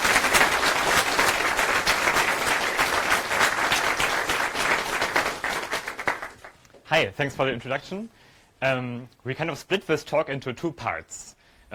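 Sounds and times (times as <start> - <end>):
crowd round of applause: 0.0 - 6.6
speech: 6.9 - 11.4.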